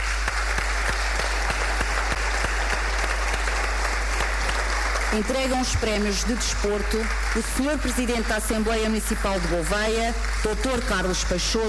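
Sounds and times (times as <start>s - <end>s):
crowd applauding: 0.0s - 11.6s
speech: 5.1s - 11.6s.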